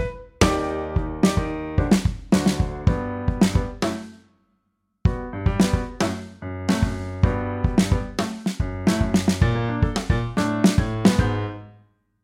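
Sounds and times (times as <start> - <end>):
kick drum: 0.0 - 3.8, 5.1 - 6.1, 6.7 - 11.4.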